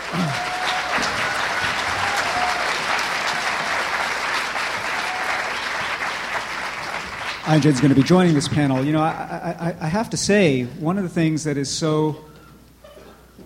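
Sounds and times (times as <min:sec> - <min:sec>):
roomful of people clapping: 0:00.0 - 0:09.4
speech: 0:07.5 - 0:12.3.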